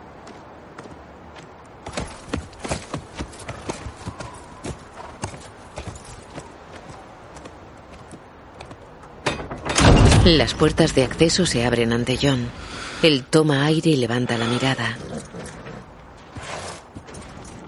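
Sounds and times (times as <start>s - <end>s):
horses approaching at walk: 0.0s - 9.3s, 14.2s - 17.6s
speech: 10.3s - 15.1s.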